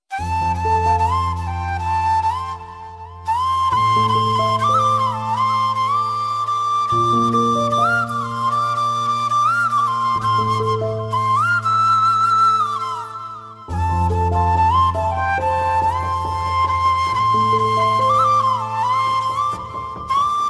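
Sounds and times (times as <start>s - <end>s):
Tamil emotional music: 0.1s - 20.4s.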